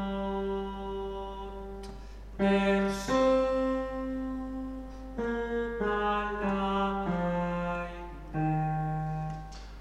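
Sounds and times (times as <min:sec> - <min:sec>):
soprano singing a motet: 0:00.0 - 0:09.0.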